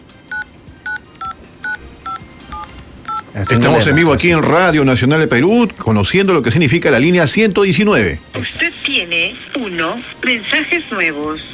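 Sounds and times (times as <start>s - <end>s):
telephone keypad DTMF tones entering a number into a voicemail line: 0.3s - 4.1s
speech: 3.4s - 11.5s.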